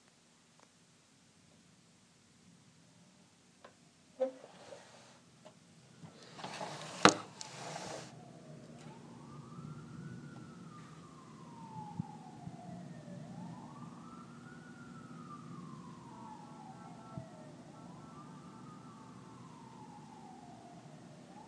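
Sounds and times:
ambulance sirens in Gaza: 0:05.8 - 0:21.4.

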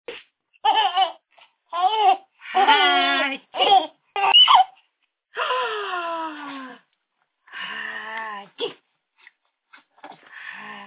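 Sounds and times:
baby laughing: 0:00.6 - 0:04.8.

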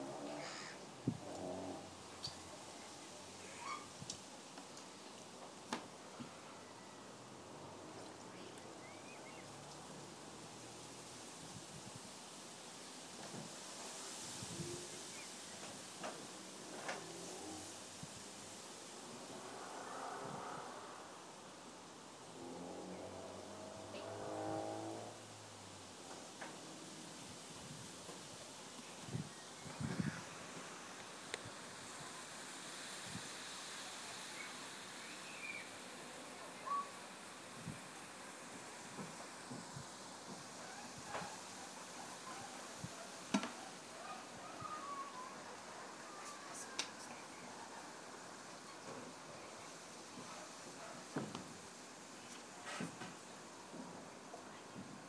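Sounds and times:
reeds swaying at Rye Meads: 0:00.0 - 0:55.0
speedway motorcycles: 0:19.1 - 0:21.1, 0:22.4 - 0:25.3.

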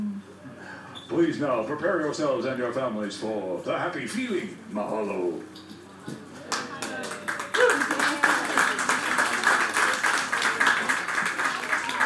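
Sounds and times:
speech: 0:01.1 - 0:06.2
audience clapping: 0:06.4 - 0:12.0.

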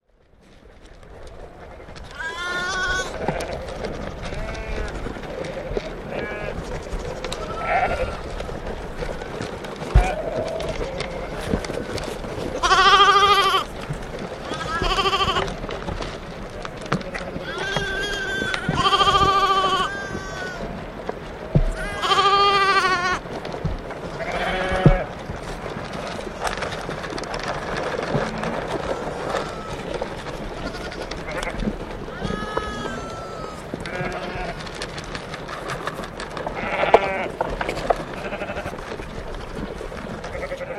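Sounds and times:
sheep feeding: 0:00.2 - 0:40.7.

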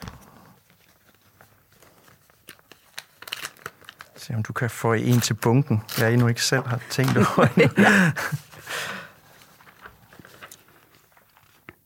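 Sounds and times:
envelope paper crinkling and rustling: 0:00.0 - 0:11.8
envelope paper tearing: 0:02.1 - 0:04.2, 0:05.0 - 0:07.2
speech: 0:04.2 - 0:09.0
laughter: 0:06.8 - 0:08.7.

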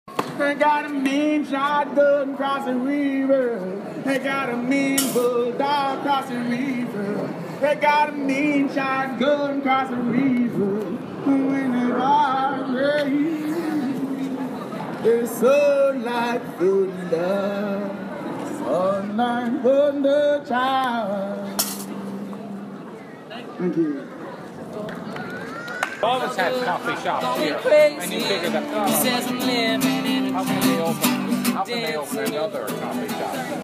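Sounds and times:
busker performing in Cork Ireland outside St Paul's: 0:00.1 - 0:33.6.

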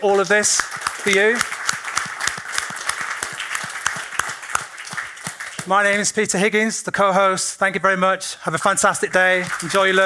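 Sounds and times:
speech: 0:00.0 - 0:01.5, 0:05.7 - 0:10.0
audience applause: 0:00.0 - 0:06.1, 0:09.1 - 0:10.0.

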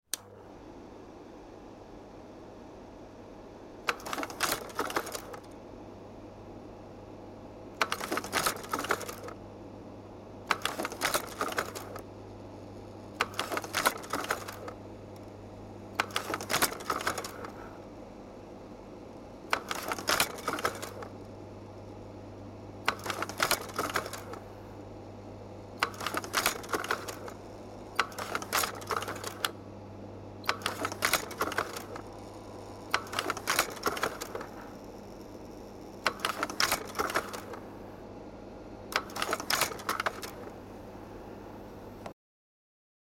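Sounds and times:
Leica Pradovit P 150 slide projector: 0:03.8 - 0:05.6, 0:07.7 - 0:09.4, 0:10.4 - 0:17.8, 0:19.4 - 0:21.9, 0:22.8 - 0:24.7, 0:25.7 - 0:29.6, 0:30.4 - 0:38.1, 0:38.9 - 0:42.1.

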